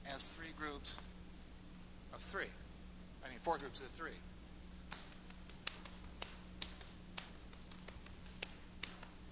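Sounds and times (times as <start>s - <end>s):
speech: 0.1s - 1.1s, 2.1s - 4.3s
rhythmic hand clapping pattern: 4.9s - 9.3s.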